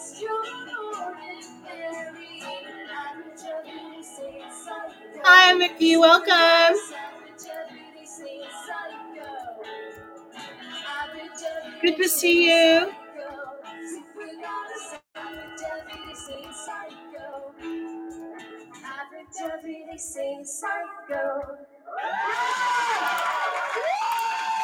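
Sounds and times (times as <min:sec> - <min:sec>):
speech: 0:05.2 - 0:06.9, 0:11.8 - 0:13.0
song playing: 0:05.2 - 0:07.1, 0:11.8 - 0:12.9
crowd screaming: 0:21.9 - 0:24.6.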